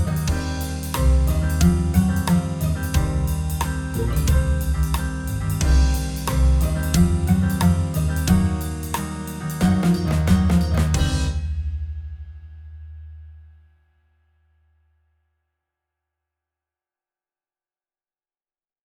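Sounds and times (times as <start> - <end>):
jazzy music: 0.0 - 11.6.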